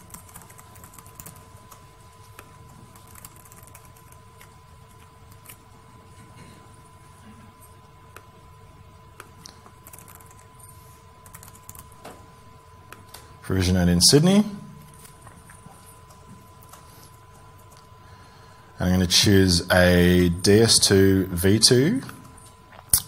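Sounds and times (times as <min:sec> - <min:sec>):
computer keyboard typing: 0:00.0 - 0:05.7, 0:09.2 - 0:12.0
speech: 0:13.5 - 0:14.6, 0:19.1 - 0:22.2.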